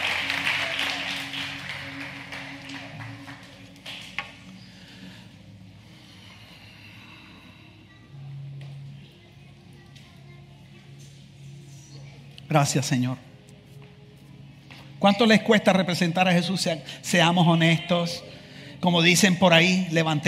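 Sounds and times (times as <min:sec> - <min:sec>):
audience applauding loudly: 0:00.0 - 0:04.4
speech: 0:12.5 - 0:13.3, 0:15.0 - 0:20.2.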